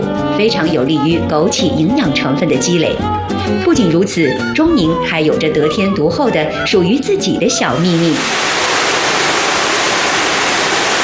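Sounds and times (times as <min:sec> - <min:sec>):
speech: 0:00.4 - 0:08.6
Qingshui River rushing water in Zhongning: 0:08.2 - 0:11.0.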